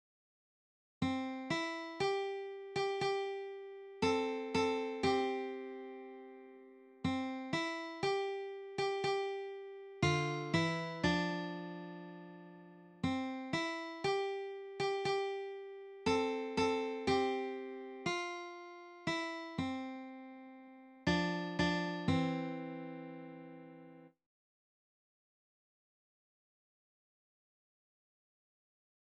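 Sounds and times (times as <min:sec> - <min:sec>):
guitar: 0:01.1 - 0:24.1.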